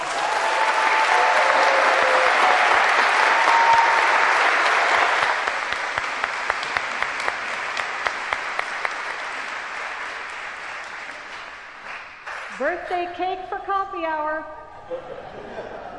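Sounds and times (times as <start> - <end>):
audience applause: 0.0 - 12.7
speech: 12.9 - 15.9
laughter: 14.7 - 15.9.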